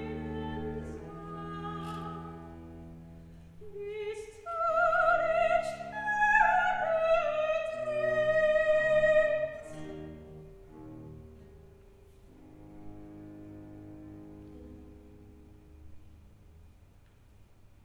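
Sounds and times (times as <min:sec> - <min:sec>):
soprano singing recitative: 0:00.0 - 0:02.6, 0:03.6 - 0:10.2.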